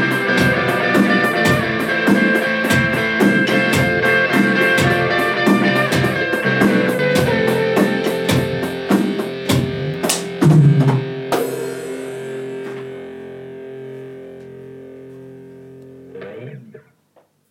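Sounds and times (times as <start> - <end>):
live drums in four-four time: 0.0 - 13.0.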